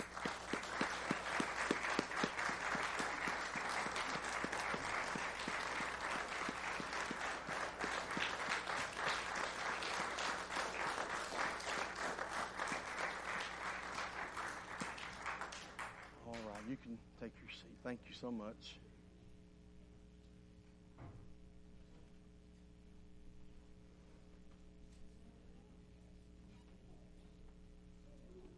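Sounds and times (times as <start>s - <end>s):
audience applause: 0.0s - 16.8s
speech: 17.8s - 18.8s.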